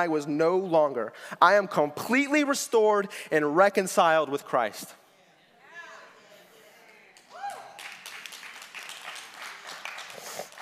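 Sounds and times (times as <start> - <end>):
speech: 0.0 - 5.0
audience clapping: 7.1 - 10.6.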